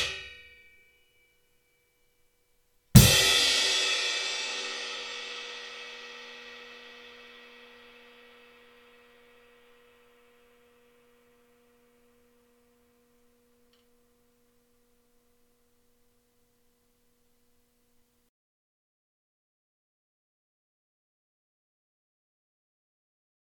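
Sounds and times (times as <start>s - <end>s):
dark crash cymbal: 3.0s - 12.3s.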